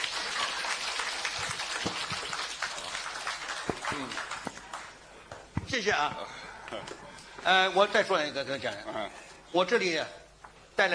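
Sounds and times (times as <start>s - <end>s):
audience applause: 0.0s - 5.1s
speech: 5.7s - 10.2s, 10.8s - 10.9s.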